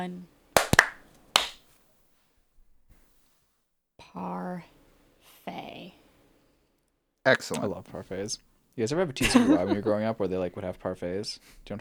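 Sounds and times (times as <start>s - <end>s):
speech: 0.0s - 0.3s, 4.2s - 4.8s, 7.2s - 11.7s
hand clap for audio sync: 0.6s - 1.7s
laughter: 7.3s - 8.3s, 8.9s - 11.7s.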